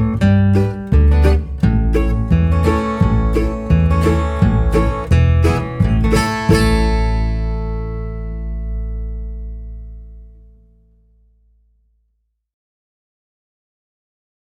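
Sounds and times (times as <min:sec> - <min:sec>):
folk tune at 86 bpm: 0:00.0 - 0:10.8.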